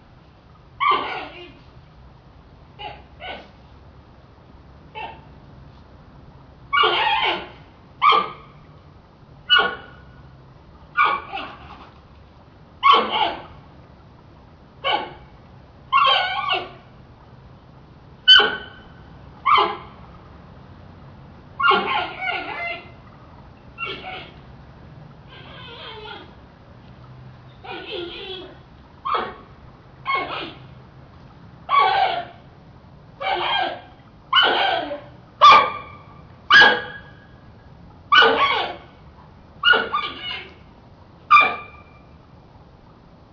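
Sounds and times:
faint low hum: 0.0s - 43.3s
panda squeals: 0.8s - 1.5s, 6.8s - 8.3s, 12.8s - 13.4s, 16.0s - 16.8s, 18.3s - 18.7s, 21.6s - 22.9s, 23.8s - 24.4s, 25.3s - 26.3s, 27.6s - 29.4s, 31.7s - 32.3s, 33.2s - 33.8s, 34.4s - 35.1s, 38.2s - 38.8s, 39.7s - 40.5s.

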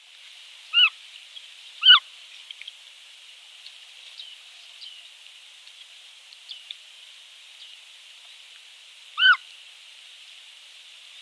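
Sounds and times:
constant hiss: 0.0s - 11.1s
giant otter pup screaming: 9.2s - 9.4s.

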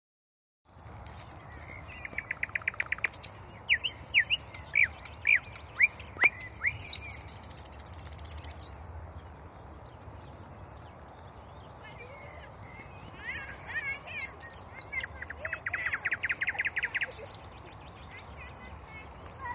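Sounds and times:
common nightingale singing: 1.5s - 8.8s, 13.0s - 18.4s.

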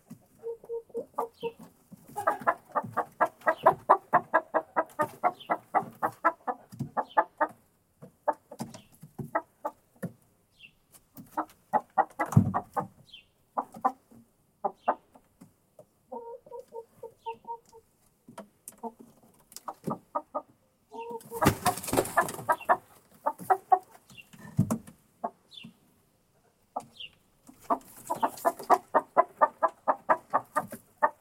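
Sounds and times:
hen clucking: 0.0s - 10.0s, 10.6s - 31.1s.

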